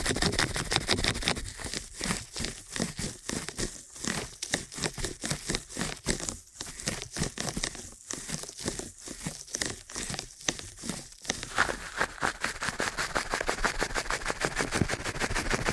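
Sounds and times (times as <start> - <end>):
fast ear cleaning scratchy rubs and clicks: 0.1 - 15.6.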